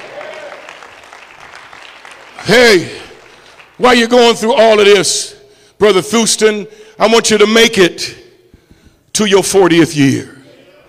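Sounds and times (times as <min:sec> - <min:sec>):
audience clapping: 0:00.0 - 0:04.1
speech: 0:02.4 - 0:03.0, 0:03.8 - 0:08.2, 0:09.2 - 0:10.4.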